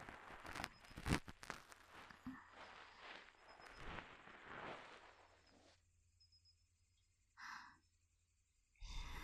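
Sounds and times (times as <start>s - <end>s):
ear cleaning ASMR: 0.0s - 5.6s.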